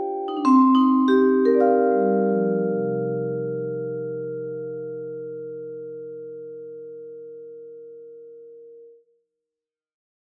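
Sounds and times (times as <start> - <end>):
pop metal vibraphone solo: 0.0 - 6.8.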